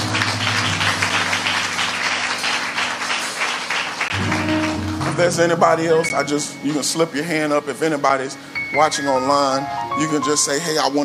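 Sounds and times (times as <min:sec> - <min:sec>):
audience applause: 0:00.0 - 0:05.9
speech: 0:05.2 - 0:11.0.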